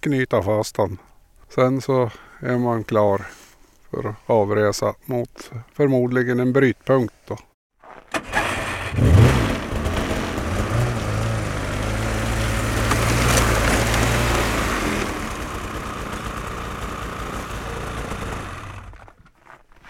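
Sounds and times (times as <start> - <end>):
speech: 0.0 - 7.5
snowmobile engine running while driven up onto a car trailer: 8.4 - 19.1.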